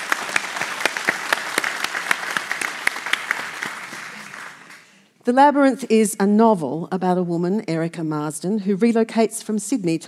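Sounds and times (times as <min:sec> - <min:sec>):
audience applause: 0:00.0 - 0:05.0
speech: 0:05.3 - 0:10.0.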